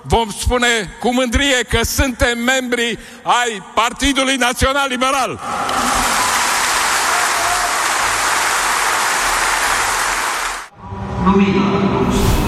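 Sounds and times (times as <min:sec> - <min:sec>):
speech: 0:00.0 - 0:06.0, 0:11.3 - 0:12.3
applause at a party congress: 0:05.5 - 0:10.7.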